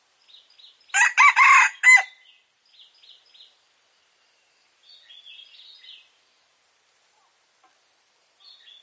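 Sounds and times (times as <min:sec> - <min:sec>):
red junglefowl crowing: 0:01.0 - 0:02.2.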